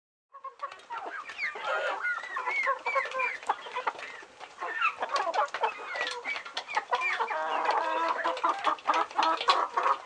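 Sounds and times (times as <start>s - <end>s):
hens clucking: 0.3s - 10.0s.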